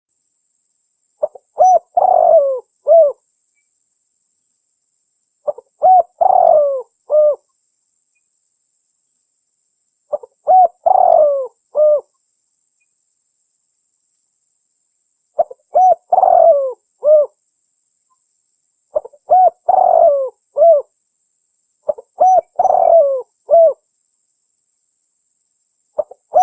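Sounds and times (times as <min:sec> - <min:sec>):
spotted dove cooing: 0:01.2 - 0:03.2, 0:05.5 - 0:07.4, 0:10.1 - 0:12.1, 0:15.4 - 0:17.4, 0:18.9 - 0:20.9, 0:21.9 - 0:23.8, 0:26.0 - 0:26.4.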